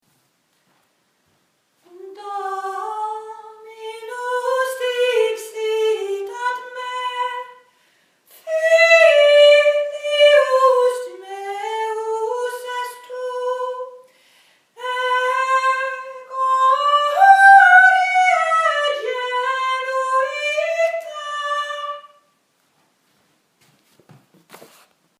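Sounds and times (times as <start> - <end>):
tenor singing: 1.9 - 7.7, 8.3 - 14.1, 14.8 - 22.2.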